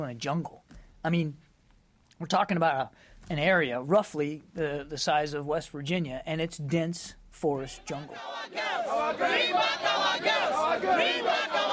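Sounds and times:
speech: 0.0s - 1.4s, 2.2s - 11.7s
protesters chanting a slogan outside the Nigerian embassy in Belgium: 7.8s - 11.7s.

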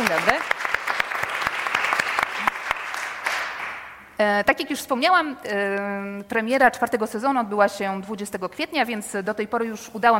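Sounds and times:
audience applause: 0.0s - 3.9s
speech: 4.2s - 10.1s.

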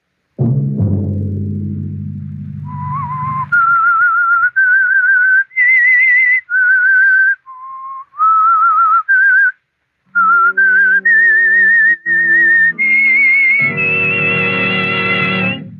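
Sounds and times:
orchestral chord and backing: 0.4s - 3.9s, 12.1s - 15.7s
lone whistler carrying the eerie theme melody of a radio drama: 2.6s - 15.7s.

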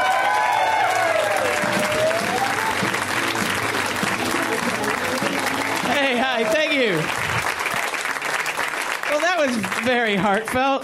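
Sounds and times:
audience applause: 0.0s - 10.8s
speech: 9.4s - 10.8s.

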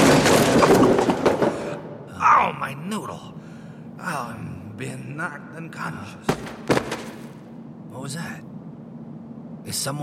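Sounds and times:
falling building chunk crashing down: 0.0s - 1.9s
speech: 2.9s - 3.4s, 4.0s - 7.0s, 8.0s - 8.5s, 9.6s - 10.0s.

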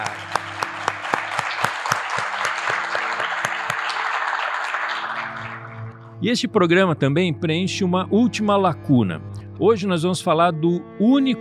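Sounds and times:
audience applause: 0.0s - 6.0s
speech: 6.2s - 11.3s.

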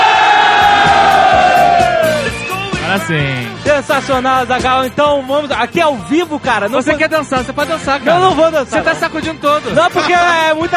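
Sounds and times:
live audience cheering: 0.0s - 2.8s
speech: 3.1s - 10.7s.

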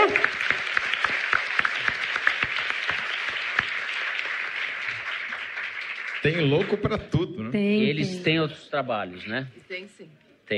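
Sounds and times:
audience applause: 0.0s - 7.2s
speech: 6.2s - 10.5s.

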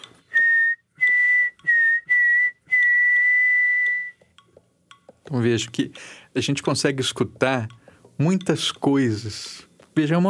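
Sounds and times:
person whistling notes resembling the word saci: 0.3s - 4.3s
speech: 5.3s - 10.2s.

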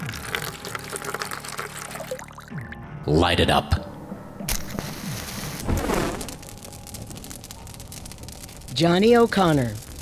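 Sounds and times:
coal oil pouring: 0.0s - 2.7s
speech: 3.1s - 3.8s, 8.8s - 9.8s.

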